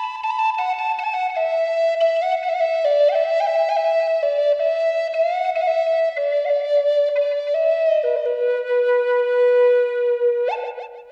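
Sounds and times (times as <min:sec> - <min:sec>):
flute: 0:00.0 - 0:11.0.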